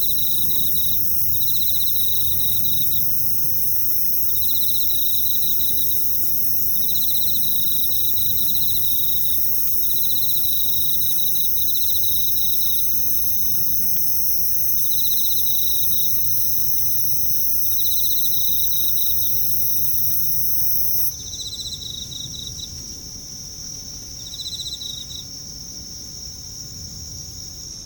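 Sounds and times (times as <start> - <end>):
insect pulsed trills at night: 0.0 - 27.7.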